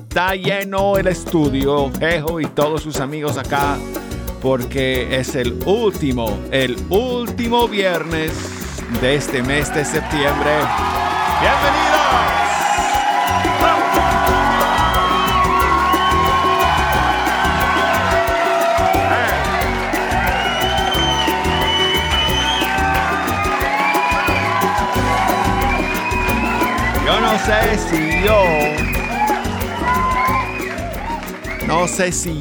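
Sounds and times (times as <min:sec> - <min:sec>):
speech: 0:00.2 - 0:12.4, 0:27.3 - 0:28.8, 0:31.7 - 0:32.3
studio audience cheering and applauding: 0:07.7 - 0:32.3.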